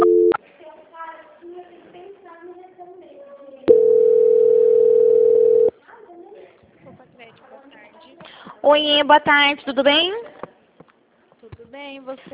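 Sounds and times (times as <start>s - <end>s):
telephone tone during a call transfer: 0.0s - 0.4s, 3.7s - 5.7s
speech: 8.7s - 10.3s, 11.8s - 12.3s.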